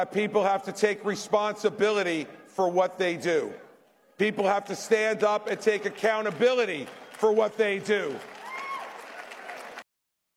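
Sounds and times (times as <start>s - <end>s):
speech: 0.0s - 3.6s, 4.2s - 8.4s
audience applause: 5.3s - 9.8s.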